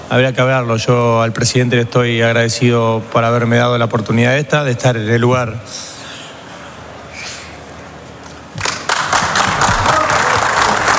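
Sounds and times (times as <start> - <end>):
speech: 0.1 - 5.9
applause in a press room: 8.6 - 10.9.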